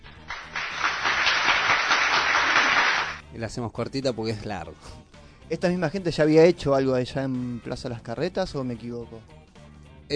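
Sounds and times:
crowd applause: 0.0 - 3.2
speech: 3.4 - 9.4.

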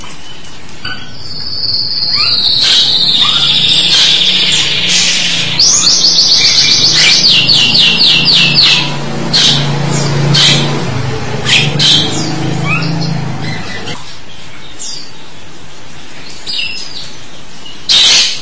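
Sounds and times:
starling song: 0.8 - 14.0.

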